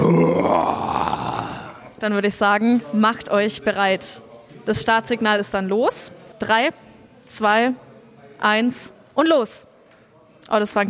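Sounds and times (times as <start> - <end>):
man imitating a lion's roar battle cry: 0.0 - 1.9
speech: 2.0 - 7.8, 8.4 - 9.7, 10.4 - 10.8.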